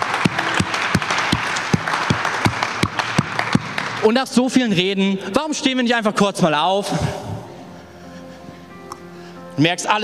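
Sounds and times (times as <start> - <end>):
audience applause: 0.0 - 4.2
speech: 4.0 - 7.2, 9.6 - 10.0.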